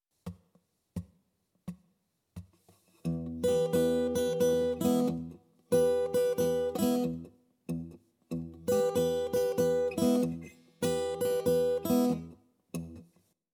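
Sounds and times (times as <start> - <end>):
blues guitar in open tunings: 3.0 - 13.0.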